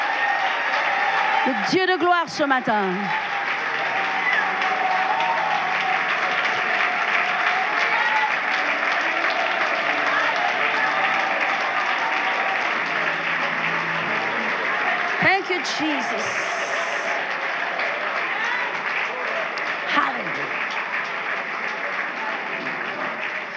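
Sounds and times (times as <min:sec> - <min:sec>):
audience applause: 0:00.0 - 0:23.5
speech: 0:01.4 - 0:03.4, 0:15.5 - 0:16.6.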